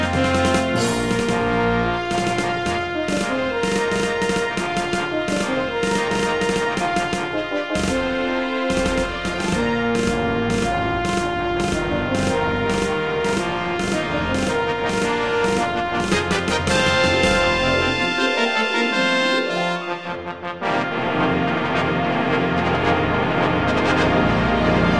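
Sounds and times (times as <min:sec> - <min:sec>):
intro music on a Yamaha SHS-500 keytar: 0:00.0 - 0:24.9.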